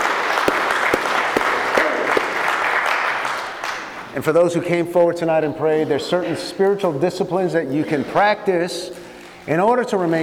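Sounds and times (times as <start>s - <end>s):
audience applause at a church service: 0.0s - 4.0s
speech: 4.2s - 10.2s.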